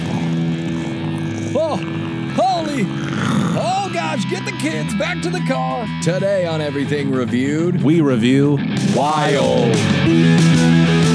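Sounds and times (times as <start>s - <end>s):
person imitating a tiger roar: 0.0s - 5.0s, 9.0s - 9.8s
speech: 1.7s - 2.2s, 2.8s - 10.6s.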